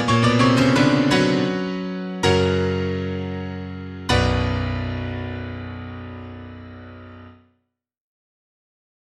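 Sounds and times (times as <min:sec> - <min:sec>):
etude in octaves allegro con fuoco: 0:00.0 - 0:07.3.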